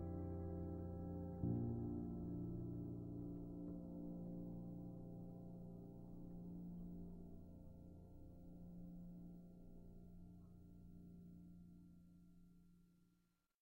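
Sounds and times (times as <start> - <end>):
piano music: 0.0 - 9.2.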